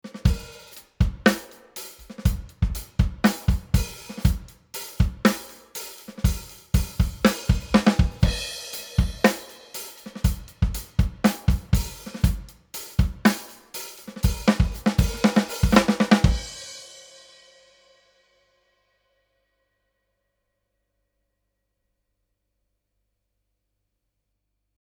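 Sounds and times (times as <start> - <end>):
compressed drums in a room: 0.1 - 16.7.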